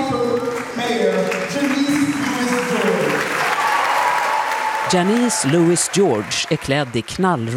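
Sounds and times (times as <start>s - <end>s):
audience applause at a political citizens' meeting in a church in Washington: 0.1s - 7.5s
cheering voices: 0.8s - 7.5s
speech: 4.9s - 7.5s.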